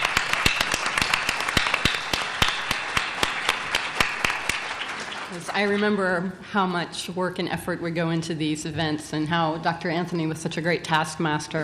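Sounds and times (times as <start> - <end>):
audience applauding: 0.0 - 5.8
speech: 5.4 - 11.6.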